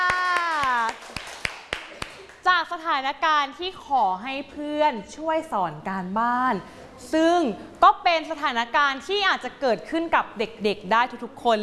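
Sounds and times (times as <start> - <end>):
people clapping in a classroom: 0.0 - 2.5
speech: 2.7 - 11.6.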